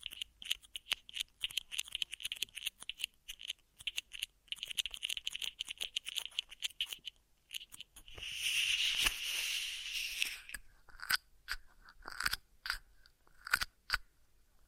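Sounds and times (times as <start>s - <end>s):
crackly rubbing ear massage: 0.0s - 14.0s
crisp brushing strokes: 3.5s - 10.6s
smooth swishing rub: 8.0s - 10.6s.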